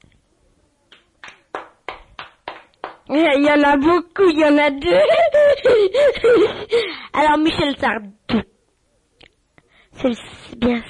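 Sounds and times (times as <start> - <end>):
applause: 0.9 - 3.1
speech: 3.1 - 8.5, 10.0 - 10.8.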